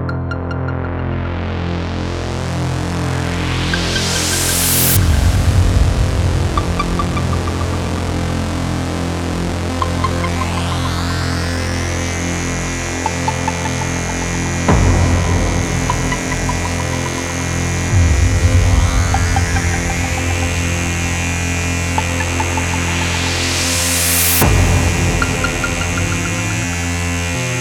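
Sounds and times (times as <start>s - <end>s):
wave slicing oscillators: 0.1s - 27.5s.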